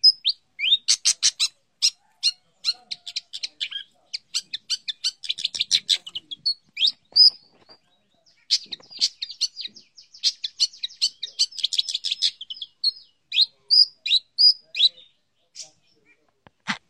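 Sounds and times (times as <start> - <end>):
cendet bird singing: 0.0 - 16.1.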